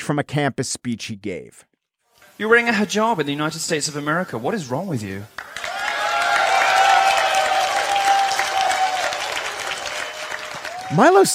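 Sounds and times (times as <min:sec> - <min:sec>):
speech: 0:00.1 - 0:01.7, 0:02.4 - 0:05.7, 0:10.9 - 0:11.3
audience cheering and applauding: 0:05.3 - 0:11.3.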